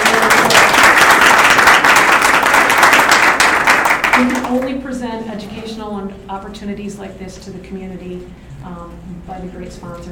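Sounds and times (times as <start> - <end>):
audience round of applause: 0.0 - 4.6
speech: 4.2 - 10.1.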